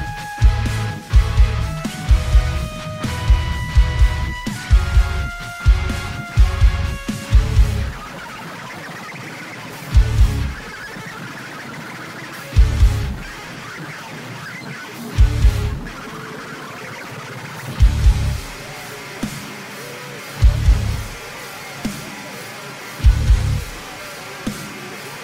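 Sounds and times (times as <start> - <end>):
extreme bass: 0.0 - 8.0, 10.0 - 10.6, 12.6 - 13.2, 15.2 - 15.9, 17.8 - 18.5, 20.4 - 21.1, 23.0 - 23.6.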